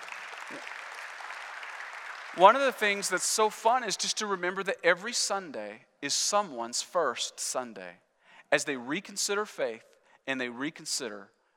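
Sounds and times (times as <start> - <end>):
audience clapping: 0.0 - 4.0
speech: 0.5 - 0.8, 2.3 - 11.5.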